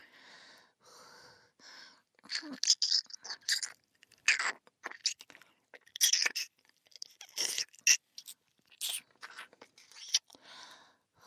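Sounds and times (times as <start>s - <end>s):
ear licking: 2.3s - 10.3s.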